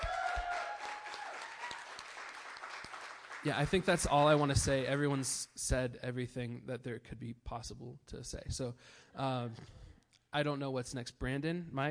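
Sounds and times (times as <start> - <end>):
audience clapping: 0.0 - 5.4
speech: 3.4 - 11.8.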